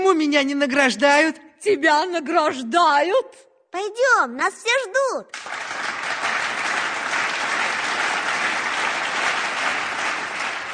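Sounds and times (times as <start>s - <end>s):
speech: 0.2s - 5.8s
thunderous applause: 5.4s - 10.7s.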